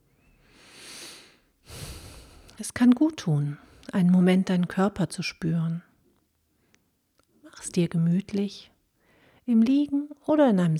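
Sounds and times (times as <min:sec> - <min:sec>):
deep breaths: 0:00.4 - 0:02.6, 0:09.0 - 0:09.5
speech: 0:02.6 - 0:05.9, 0:07.7 - 0:08.7, 0:09.5 - 0:10.7.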